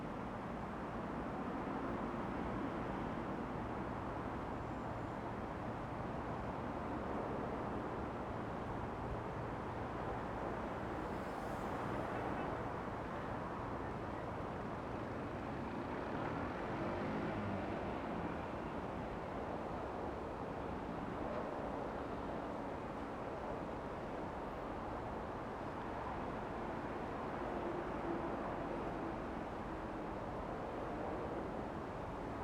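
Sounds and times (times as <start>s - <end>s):
city soundscape: 0.0s - 32.4s.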